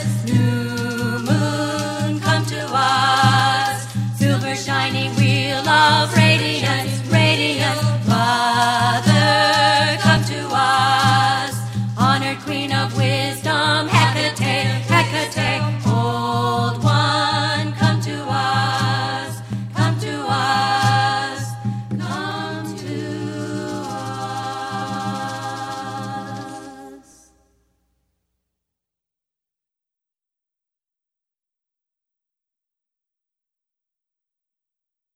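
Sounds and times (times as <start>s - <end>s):
Wiccan chanting: 0.0s - 27.4s.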